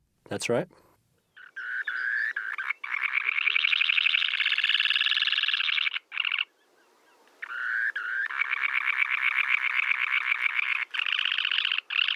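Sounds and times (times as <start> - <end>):
semipalmated sandpiper call: 1.3 - 12.1.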